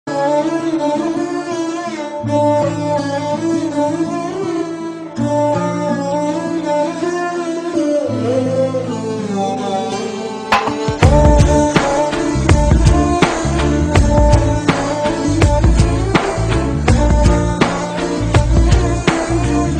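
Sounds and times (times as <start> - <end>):
sad music: 0.1 - 19.7.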